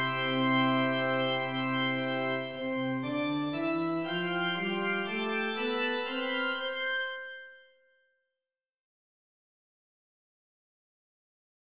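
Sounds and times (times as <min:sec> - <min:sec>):
organ: 0:00.0 - 0:07.4.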